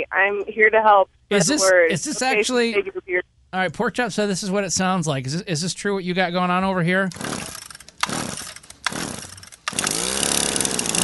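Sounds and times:
speech: 0.0s - 7.6s
string trimmer (weed whacker) engine revving: 7.1s - 11.0s.

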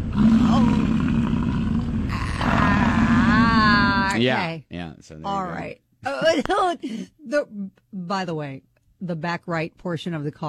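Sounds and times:
human voice imitating a bull bellowing while mating: 0.1s - 4.2s
speech: 4.2s - 10.4s.

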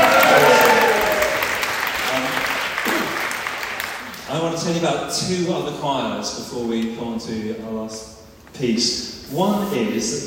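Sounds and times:
crowd applause: 0.0s - 4.2s
speech: 4.7s - 10.2s.

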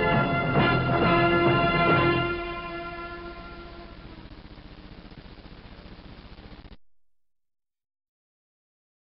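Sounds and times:
intro instrumental music: 0.0s - 4.4s.

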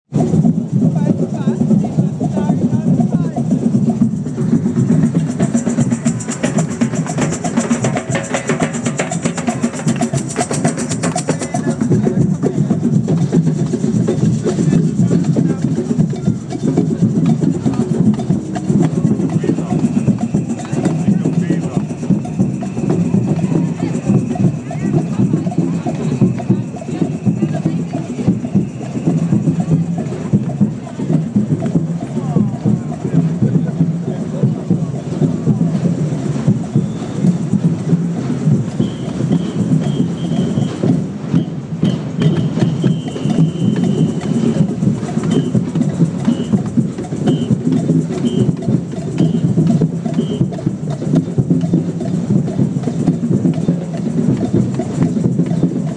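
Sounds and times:
Bremen carnival samba music: 0.0s - 55.9s.

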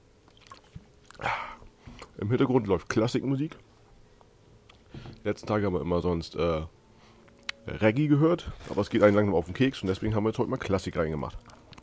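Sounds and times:
person chewing a bread roll: 0.2s - 2.1s, 11.4s - 11.8s
speech: 2.2s - 3.7s, 5.2s - 6.8s, 7.7s - 11.5s.

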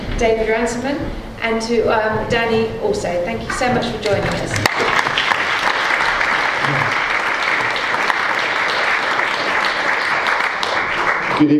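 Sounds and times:
speech: 0.2s - 4.9s, 11.4s - 11.5s
audience applause at the Cambridge Literary Festival: 4.0s - 11.5s.

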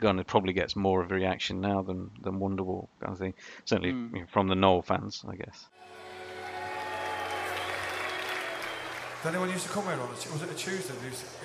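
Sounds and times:
speech: 0.0s - 6.0s, 9.2s - 11.4s
audience clapping: 5.8s - 11.4s.

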